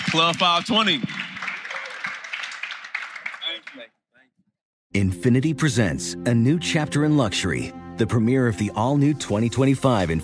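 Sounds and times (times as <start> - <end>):
audience applause: 0.0 - 3.9
speech: 0.1 - 1.2, 3.8 - 4.0, 4.9 - 10.2.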